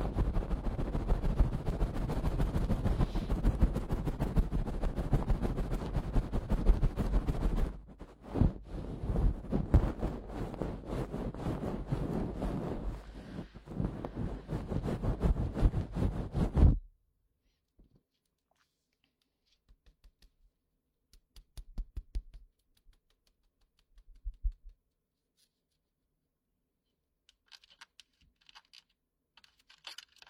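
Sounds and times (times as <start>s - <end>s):
goose-feather tool brushing in the ear: 0.0s - 16.8s.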